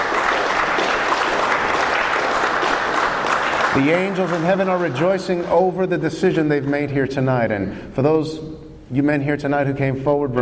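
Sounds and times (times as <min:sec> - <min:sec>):
audience applause at an evening church gathering: 0:00.0 - 0:06.8
speech: 0:03.7 - 0:10.4.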